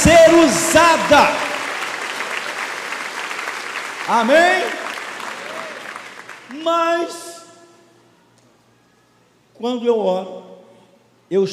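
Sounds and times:
crowd applauding: 0:00.0 - 0:06.7
speech: 0:00.5 - 0:01.4, 0:04.1 - 0:04.8, 0:06.5 - 0:07.3, 0:09.6 - 0:10.4, 0:11.3 - 0:11.5.

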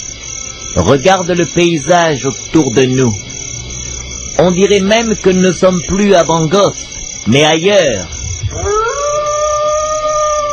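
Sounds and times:
speech: 0:00.8 - 0:03.2, 0:04.4 - 0:08.7
animals howling: 0:08.1 - 0:10.5.

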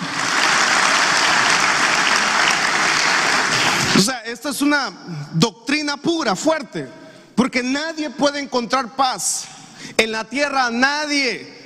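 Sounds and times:
audience applauding: 0:00.0 - 0:04.1
speech: 0:04.5 - 0:11.6.

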